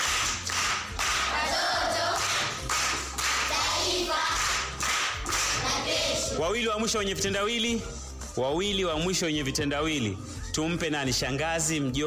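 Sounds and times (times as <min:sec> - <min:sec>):
children clapping during a school riddle session: 0:00.0 - 0:06.2
speech: 0:06.5 - 0:12.0.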